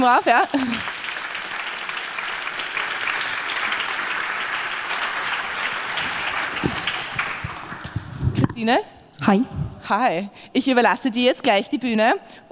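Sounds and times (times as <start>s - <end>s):
speech: 0.0s - 0.7s, 8.6s - 12.5s
audience applause: 0.0s - 8.5s.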